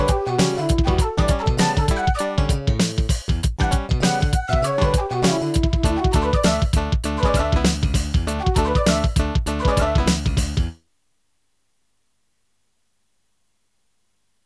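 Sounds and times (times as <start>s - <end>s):
human funk music: 0.0s - 10.8s.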